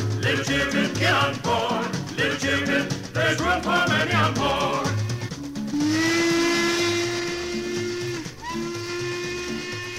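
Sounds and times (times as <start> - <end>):
speech: 0.2 - 4.8
steam locomotive whistle: 5.0 - 9.9.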